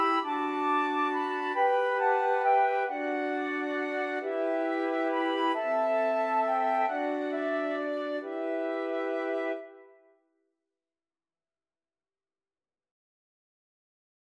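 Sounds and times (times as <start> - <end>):
flute quartet playing: 0.0 - 9.8.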